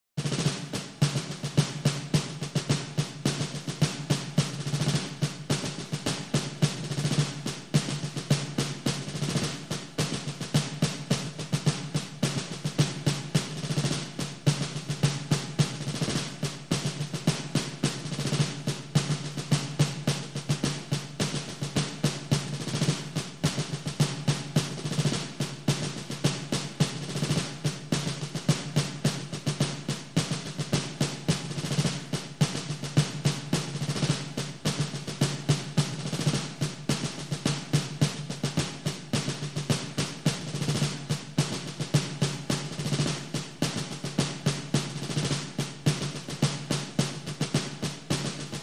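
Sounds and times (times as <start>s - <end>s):
marching drum: 0.2s - 48.6s.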